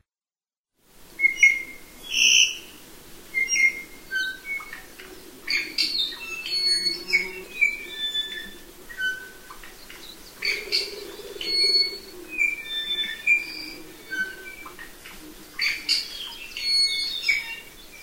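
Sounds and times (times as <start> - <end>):
bird courtship song in a forest: 3.4 - 18.0.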